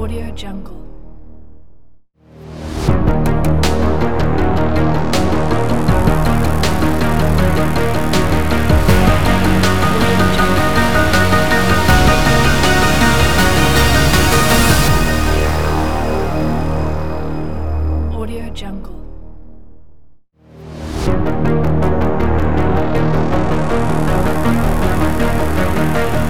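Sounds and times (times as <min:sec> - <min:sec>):
80s sci-fi tension trailer music: 0:02.6 - 0:18.6, 0:20.8 - 0:26.2.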